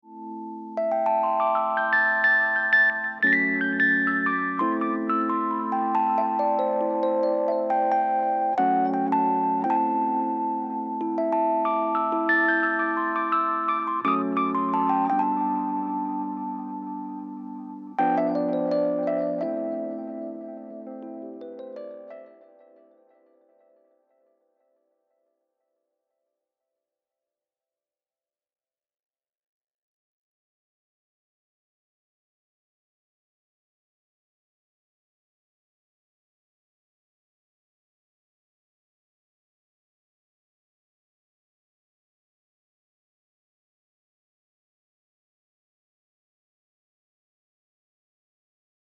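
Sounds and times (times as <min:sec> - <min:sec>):
Rhodes electric piano with echo: 0:00.7 - 0:23.8.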